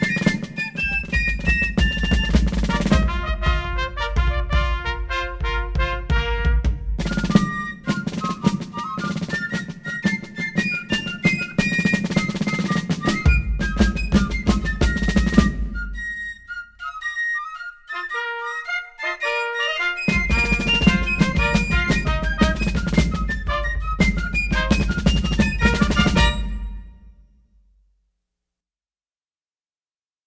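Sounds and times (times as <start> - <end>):
fife and drum corps playing a quickstep: 0.0 - 26.9.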